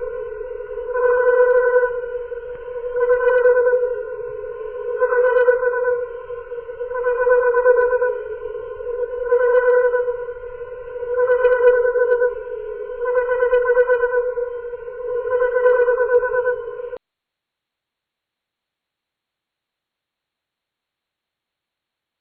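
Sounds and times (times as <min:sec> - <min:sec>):
cricket chirping: 0:00.0 - 0:17.0.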